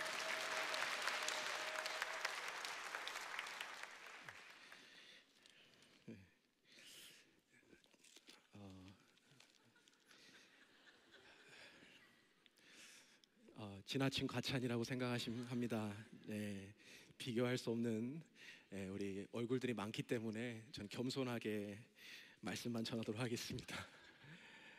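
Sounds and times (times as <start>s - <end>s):
audience applause welcoming a pastor: 0.0s - 5.0s
speech: 13.8s - 24.0s.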